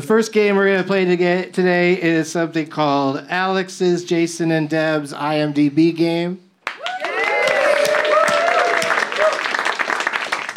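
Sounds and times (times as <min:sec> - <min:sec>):
speech: 0:00.0 - 0:06.4
audience applause: 0:06.6 - 0:10.5.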